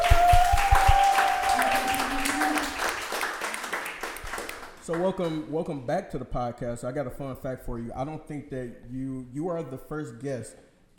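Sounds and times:
applause: 0.0 - 5.5
speech: 4.9 - 10.9.

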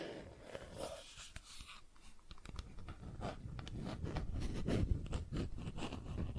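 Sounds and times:
plastic objects tapped and scratched: 2.2 - 6.3.

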